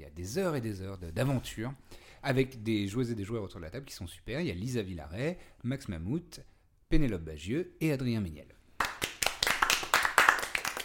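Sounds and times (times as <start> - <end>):
speech: 0.2 - 8.6
small group clapping: 8.8 - 10.8.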